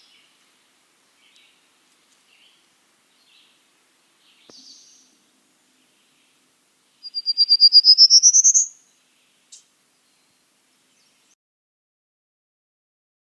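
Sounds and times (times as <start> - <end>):
prairie warbler: 1.0 - 11.4.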